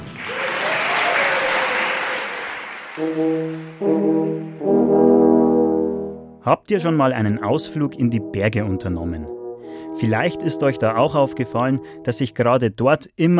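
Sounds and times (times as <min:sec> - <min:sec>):
audience applause at a concert: 0:00.1 - 0:04.9
speech: 0:03.0 - 0:05.0, 0:06.4 - 0:09.4, 0:10.0 - 0:13.3.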